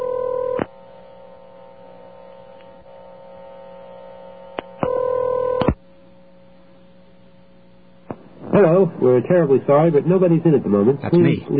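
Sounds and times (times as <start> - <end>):
telephone ringing: 0.0 - 0.6, 4.8 - 5.8
speech: 8.6 - 11.5.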